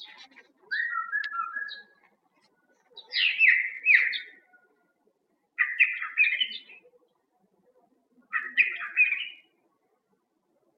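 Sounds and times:
bird singing in spring: 0.7s - 2.0s, 3.0s - 4.6s, 5.6s - 6.8s, 8.3s - 9.5s.

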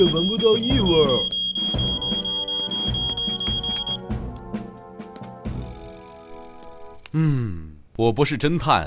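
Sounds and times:
speech: 0.0s - 1.8s, 7.2s - 8.8s
alarm high-pitched tone: 0.0s - 4.1s.

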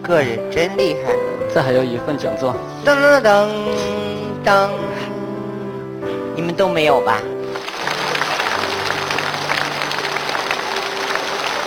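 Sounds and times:
speech: 0.0s - 5.0s, 6.4s - 7.3s
large studio audience applause: 7.5s - 11.6s.

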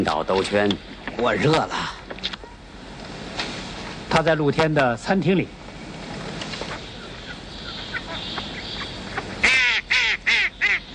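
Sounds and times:
speech: 0.0s - 2.4s, 4.1s - 5.6s
ducks quacking: 6.6s - 10.9s.

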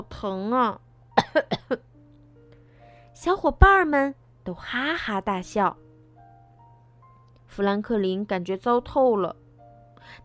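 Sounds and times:
speech: 0.2s - 1.9s, 3.2s - 5.8s, 7.5s - 9.4s, 10.1s - 10.2s
coughing: 1.2s - 1.9s.

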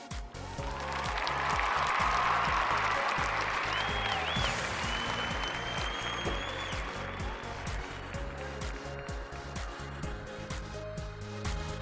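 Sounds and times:
large crowd applauding: 0.2s - 11.6s
whistle: 3.6s - 7.8s.

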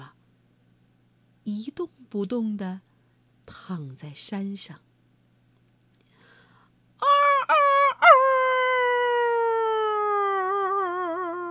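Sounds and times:
speech: 1.5s - 2.9s, 3.5s - 4.9s
rooster crowing loudly: 7.0s - 11.4s.

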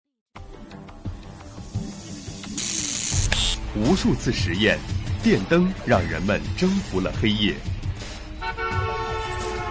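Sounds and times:
speech: 3.7s - 7.8s
car horn honking: 8.4s - 9.7s.

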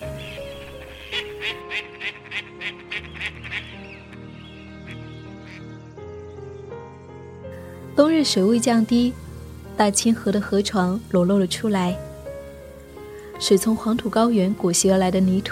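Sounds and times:
steady tonal background: 0.0s - 15.5s
wild ducks quacking: 0.1s - 5.7s
speech: 8.0s - 9.2s, 9.8s - 12.1s, 13.4s - 15.5s.

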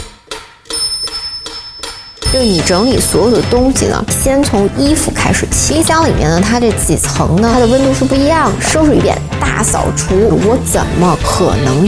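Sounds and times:
metronome ticking: 0.0s - 8.4s
speech: 2.3s - 11.8s.

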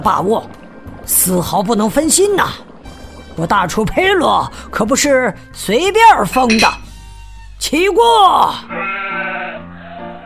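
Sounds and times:
speech: 0.0s - 2.7s, 3.4s - 6.8s, 7.6s - 8.9s
lamb bleating: 8.7s - 10.1s.

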